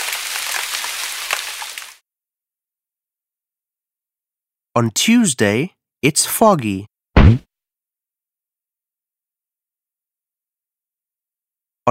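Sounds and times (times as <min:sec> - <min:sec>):
steady rain: 0:00.0 - 0:02.0
speech: 0:04.8 - 0:07.5.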